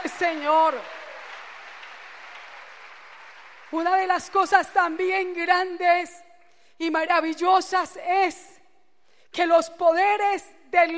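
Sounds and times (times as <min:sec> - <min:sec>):
church congregation applause: 0:00.0 - 0:04.8
speech: 0:00.2 - 0:01.0, 0:03.7 - 0:06.2, 0:06.8 - 0:08.5, 0:09.3 - 0:10.9.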